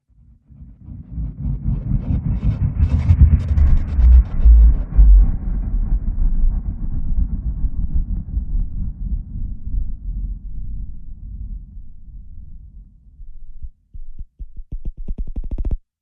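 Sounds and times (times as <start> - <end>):
filtered sub bass: 0.8 - 15.6.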